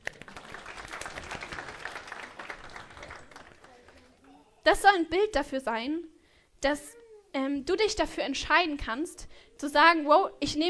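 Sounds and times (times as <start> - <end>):
applause: 0.0 - 4.1
speech: 4.7 - 10.6.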